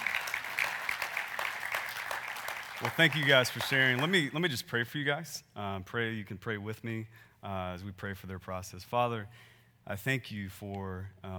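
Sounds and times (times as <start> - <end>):
people clapping: 0.0 - 4.6
speech: 2.8 - 11.3.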